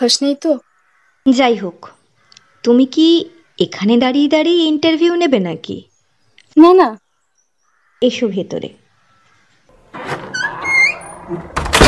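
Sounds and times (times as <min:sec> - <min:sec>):
speech: 0:00.0 - 0:02.0, 0:02.6 - 0:05.9, 0:06.6 - 0:07.0, 0:08.0 - 0:08.8, 0:11.3 - 0:11.6
door shutting: 0:09.7 - 0:11.8.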